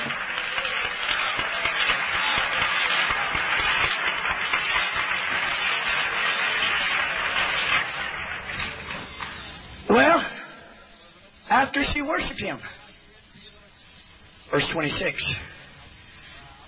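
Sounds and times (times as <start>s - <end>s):
people clapping hands: 0.0s - 10.2s
speech: 12.0s - 12.8s, 14.5s - 15.5s.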